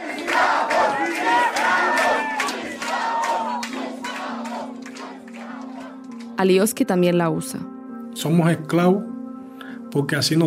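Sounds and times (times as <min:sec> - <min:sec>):
large crowd shouting at arriving doctors: 0:00.0 - 0:06.0
speech: 0:06.4 - 0:09.1, 0:10.0 - 0:10.4.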